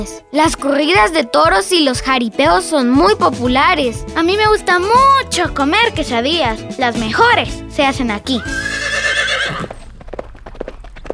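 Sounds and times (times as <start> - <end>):
speech: 0.0 - 8.7
horse whinny: 8.4 - 9.9
horse hooves clip-clopping: 8.4 - 11.1.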